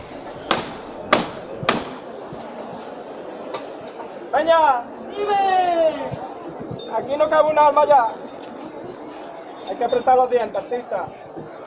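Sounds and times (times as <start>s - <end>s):
crowd murmur: 0.0s - 11.6s
thud: 0.4s - 2.0s
knocks of bearers lifting a procession float: 0.5s - 2.0s
speech: 4.5s - 6.2s, 6.9s - 8.2s, 9.7s - 11.2s.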